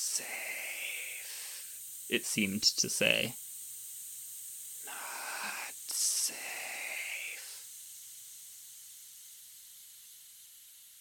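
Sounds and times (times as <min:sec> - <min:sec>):
speech: 0:00.0 - 0:00.4, 0:02.1 - 0:03.4
eerie hissing: 0:00.0 - 0:03.4, 0:04.7 - 0:08.0.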